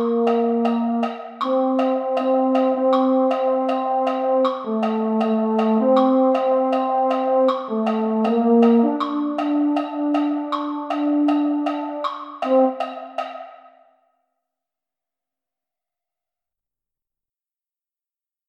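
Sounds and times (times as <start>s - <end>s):
baritone: 0.0s - 13.4s.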